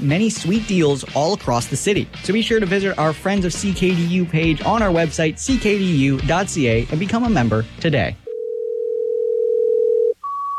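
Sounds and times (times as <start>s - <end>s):
speech: 0.0s - 8.2s
telephone line tone while calling a radio station DJ: 8.3s - 10.5s.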